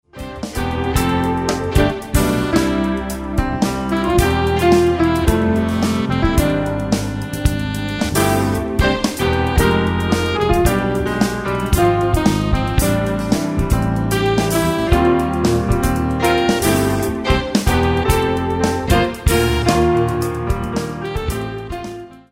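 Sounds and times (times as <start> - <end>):
modern jazz: 0.0 - 22.3.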